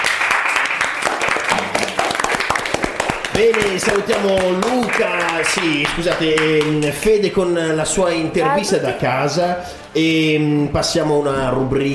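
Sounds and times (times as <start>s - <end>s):
applause: 0.0s - 7.1s
speech: 3.4s - 11.9s.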